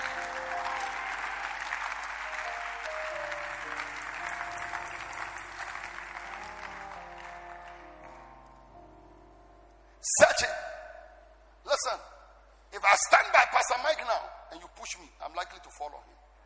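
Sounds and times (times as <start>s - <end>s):
audience clapping: 0.0s - 8.6s
speech: 13.0s - 16.3s.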